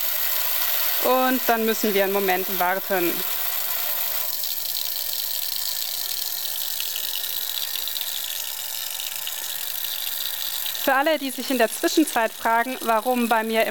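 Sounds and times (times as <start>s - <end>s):
pump running: 0.0s - 13.6s
speech: 1.0s - 3.4s, 10.9s - 13.6s.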